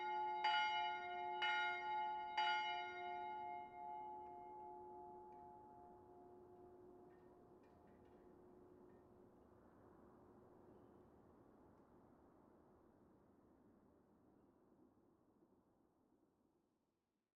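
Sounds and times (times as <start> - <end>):
bells ringing: 0.0 - 5.2.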